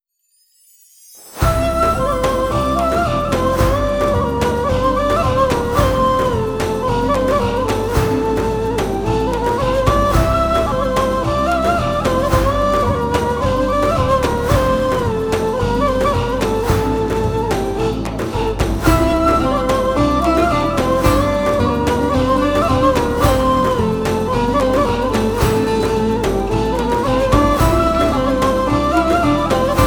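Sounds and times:
tasavvuf ney flute: 0:01.4 - 0:29.8.

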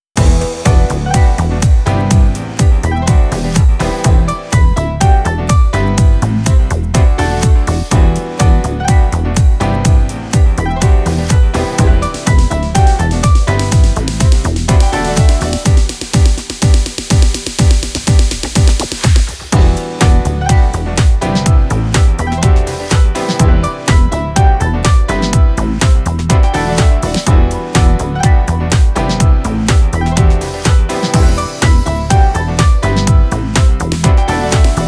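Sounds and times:
electronic house techno music: 0:00.0 - 0:34.8.

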